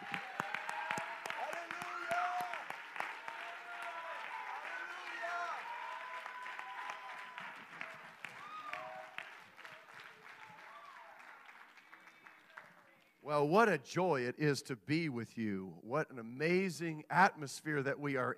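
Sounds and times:
audience clapping: 0.0 - 13.2
speech: 13.3 - 18.3.

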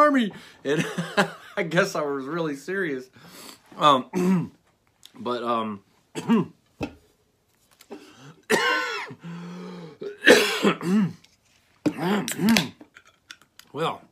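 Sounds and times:
speech: 0.2 - 4.6, 5.2 - 7.0, 10.6 - 11.2, 12.0 - 12.8, 13.7 - 14.1
person coughing after inhaling popcorn: 4.1 - 4.6, 6.2 - 6.6, 7.9 - 11.2, 11.9 - 12.8.

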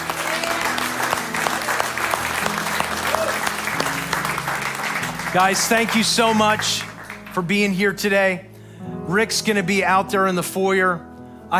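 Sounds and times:
audience clapping hands: 0.0 - 8.0
speech: 5.3 - 8.5, 9.1 - 11.5.

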